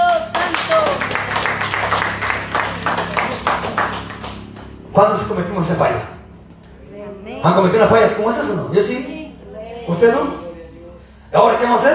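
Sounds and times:
crowd clapping: 0.0s - 4.9s
speech: 5.0s - 6.2s, 7.4s - 9.1s, 9.8s - 10.5s, 11.3s - 11.9s.

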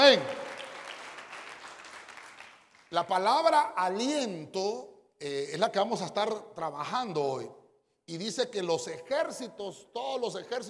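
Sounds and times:
speech: 0.0s - 0.4s, 2.9s - 10.6s
church audience applause: 0.0s - 2.9s.

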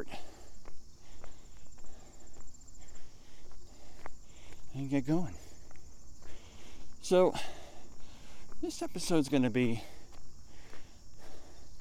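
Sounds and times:
footsteps walking up a hill: 0.0s - 11.7s
speech: 4.9s - 5.4s, 7.0s - 7.6s, 8.6s - 10.0s.

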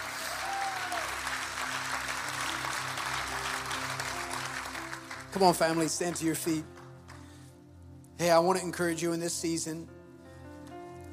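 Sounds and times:
audience applauding: 0.0s - 7.3s
speech: 5.3s - 6.8s, 8.2s - 10.0s.

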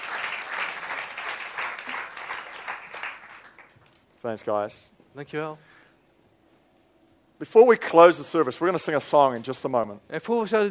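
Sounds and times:
church audience applauding a panel: 0.0s - 3.9s
speech: 4.2s - 5.7s, 7.4s - 10.6s.

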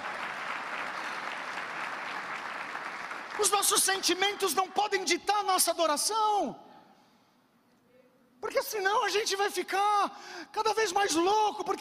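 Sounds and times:
audience applause: 0.0s - 4.3s
speech: 3.4s - 6.6s, 8.6s - 11.8s.

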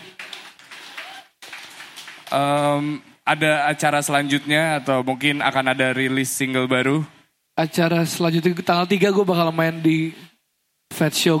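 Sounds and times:
audience applause: 0.0s - 2.8s
speech: 2.3s - 10.3s, 10.9s - 11.3s.

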